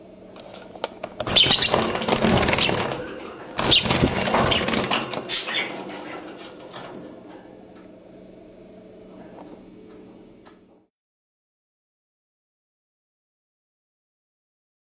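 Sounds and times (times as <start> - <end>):
Agapornis pullaria: 1.2 - 6.5.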